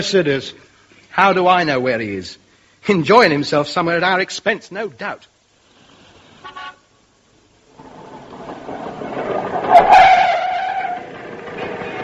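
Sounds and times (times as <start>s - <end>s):
speech: 0.0s - 5.3s
scooter horn toot: 6.4s - 6.9s
scooter pulling up: 7.7s - 12.0s.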